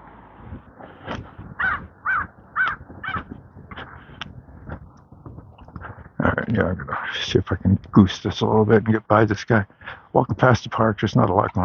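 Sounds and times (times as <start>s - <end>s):
crow cawing: 0.8s - 4.7s
speech: 6.5s - 11.6s.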